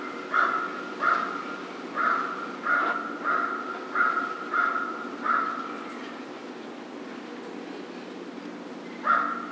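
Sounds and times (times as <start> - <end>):
American crow raspy cawing: 0.3 - 1.4, 2.0 - 5.6, 9.0 - 9.5.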